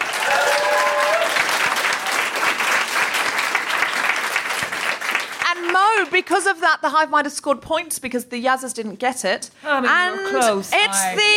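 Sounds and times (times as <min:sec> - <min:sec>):
audience applause: 0:00.0 - 0:06.2
speech: 0:06.1 - 0:11.3.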